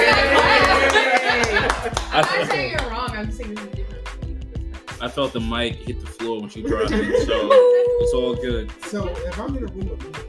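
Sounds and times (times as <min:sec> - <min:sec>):
people chuckling: 0:00.0 - 0:02.8, 0:06.6 - 0:08.4
round of applause: 0:00.0 - 0:03.0
speech: 0:05.0 - 0:10.2.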